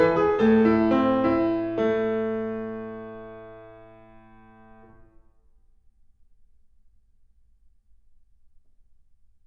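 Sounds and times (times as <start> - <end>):
classical keyboard piece in A minor: 0.0 - 5.2.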